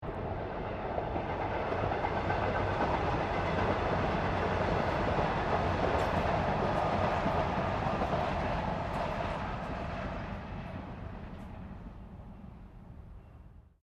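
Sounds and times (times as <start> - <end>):
train passing outside in Melbourne: 0.0 - 13.7.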